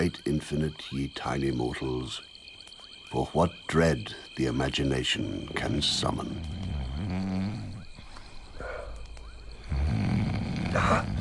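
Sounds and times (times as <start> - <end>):
speech: 0.0 - 2.3, 3.1 - 7.6, 10.8 - 11.1
man snoring: 6.2 - 7.9, 9.6 - 11.1.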